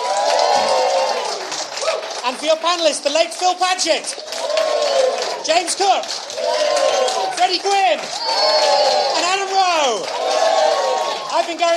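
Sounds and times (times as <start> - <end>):
audience applause: 0.0 - 11.7
speech: 2.3 - 4.4, 5.4 - 6.8, 7.4 - 10.7, 11.3 - 11.7.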